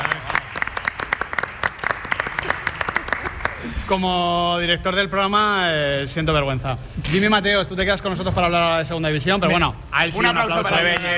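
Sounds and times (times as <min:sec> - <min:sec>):
applause: 0:00.0 - 0:03.9, 0:10.7 - 0:11.1
speech: 0:03.9 - 0:11.1.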